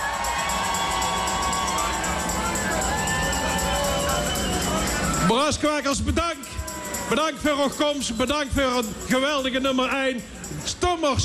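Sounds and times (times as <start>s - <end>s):
audience applause and cheering: 0.0s - 5.9s, 6.6s - 9.4s
speech: 5.3s - 6.4s, 7.1s - 11.2s.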